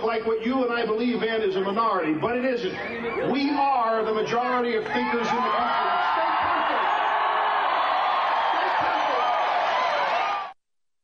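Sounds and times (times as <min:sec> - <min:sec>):
speech: 0:00.1 - 0:06.1
crowd cheering: 0:04.8 - 0:10.6.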